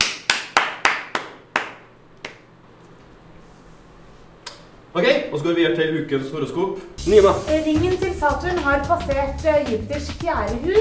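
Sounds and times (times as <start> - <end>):
hand claps: 0.0 - 2.5
speech: 5.0 - 10.7.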